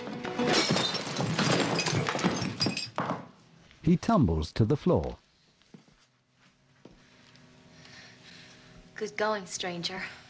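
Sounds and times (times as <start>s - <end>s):
glass bottle smashed over a man's head in a fight: 0.2s - 3.2s
speech: 3.9s - 5.2s, 9.0s - 10.2s.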